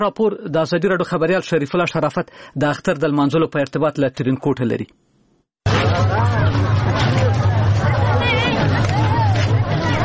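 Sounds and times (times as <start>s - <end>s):
speech: 0.0s - 5.0s
crowd of Eid guests chattering in Tarinkot city: 5.7s - 10.0s.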